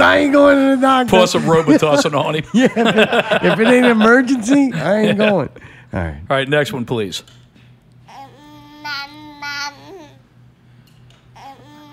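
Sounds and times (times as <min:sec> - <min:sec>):
low steady hum: 0:00.0 - 0:11.9
speech: 0:00.1 - 0:07.4
laughter: 0:01.1 - 0:05.6
baby babbling like saying mama: 0:08.1 - 0:10.3, 0:11.3 - 0:11.9.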